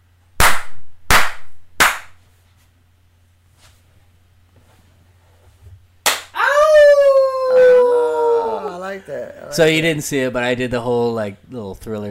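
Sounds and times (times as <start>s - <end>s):
hand slaps: 0.4s - 2.2s, 6.0s - 6.4s
long wavering howl: 6.4s - 9.0s
speech: 9.5s - 12.1s.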